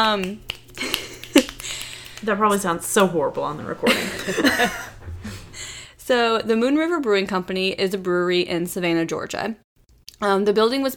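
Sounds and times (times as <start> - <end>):
speech: 0.0 - 0.5, 2.2 - 4.9, 6.1 - 9.6, 10.2 - 10.9
finger snaps: 0.0 - 2.3
laughter: 3.8 - 5.6.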